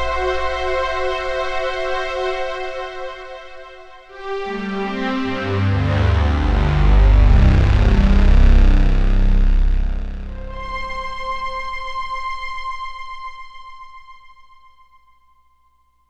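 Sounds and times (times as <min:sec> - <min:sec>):
emulator synthesized marcato strings: 0:00.0 - 0:03.5, 0:04.2 - 0:11.8.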